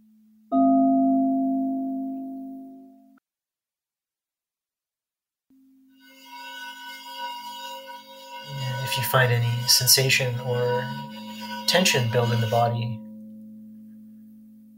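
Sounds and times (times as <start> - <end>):
meditation bowl ringing: 0.5 - 3.2, 5.6 - 14.7
speech: 9.0 - 13.0.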